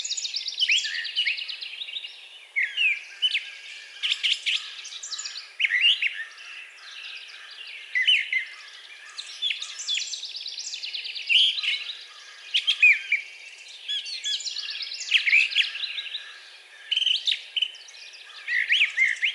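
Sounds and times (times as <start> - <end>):
brown thrasher song: 0.0 - 19.3.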